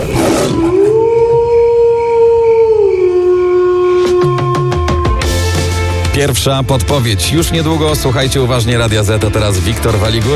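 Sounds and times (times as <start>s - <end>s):
wolf howling: 0.0s - 5.5s
speech: 6.2s - 10.3s.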